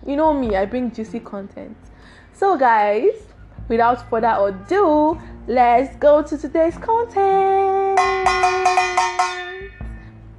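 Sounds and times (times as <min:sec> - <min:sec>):
speech: 0:00.1 - 0:09.4
bell ringing: 0:08.0 - 0:10.0.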